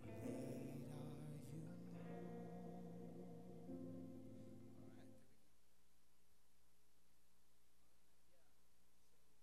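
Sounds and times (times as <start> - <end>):
guitar line: 0.0 - 5.2.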